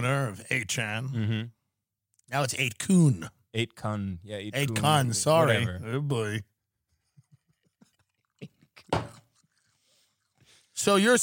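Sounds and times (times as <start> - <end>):
speech: 0.0 - 1.6, 2.3 - 6.5, 10.8 - 11.2
chewing ice: 7.8 - 10.5.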